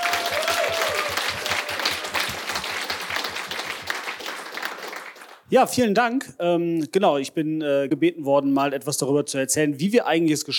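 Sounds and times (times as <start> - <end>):
audience applause: 0.0 - 5.4
speech: 5.5 - 10.5.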